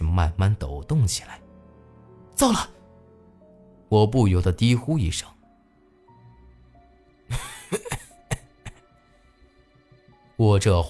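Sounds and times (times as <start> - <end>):
speech: 0.4 - 1.4, 2.4 - 2.8, 3.9 - 5.4, 10.4 - 10.8
several coughs: 7.3 - 8.8.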